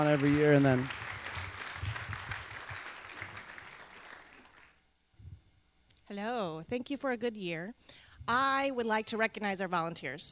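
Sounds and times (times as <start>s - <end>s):
speech: 0.0s - 1.0s, 6.1s - 10.2s
audience applause: 0.0s - 4.8s.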